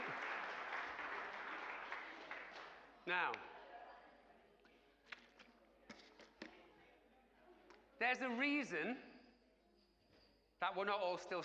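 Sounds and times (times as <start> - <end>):
audience applause: 0.0 - 3.0
speech: 3.1 - 3.6, 8.0 - 9.1, 10.6 - 11.4.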